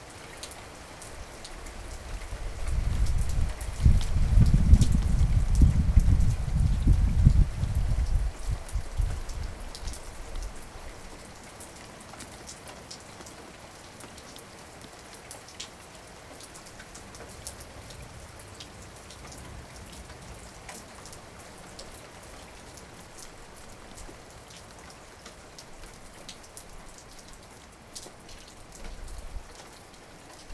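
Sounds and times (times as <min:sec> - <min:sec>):
thunderstorm: 0:02.6 - 0:09.5.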